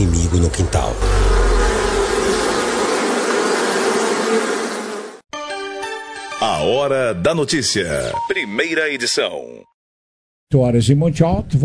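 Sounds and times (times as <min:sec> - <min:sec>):
speech: 0:00.3 - 0:01.3, 0:06.4 - 0:09.7, 0:10.5 - 0:11.6
mosquito buzzing: 0:01.0 - 0:05.2.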